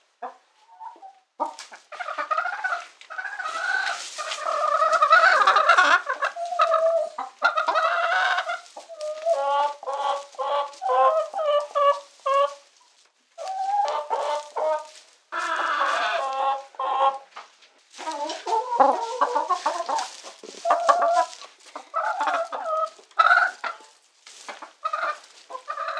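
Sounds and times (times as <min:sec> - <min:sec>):
chicken squawking in distress: 0:00.9 - 0:12.6, 0:13.4 - 0:17.2, 0:18.0 - 0:23.9, 0:24.5 - 0:25.9.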